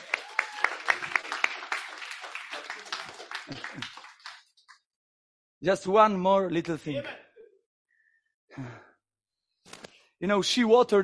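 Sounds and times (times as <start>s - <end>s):
audience clapping: 0.0s - 4.9s
speech: 5.6s - 7.2s, 10.2s - 11.0s.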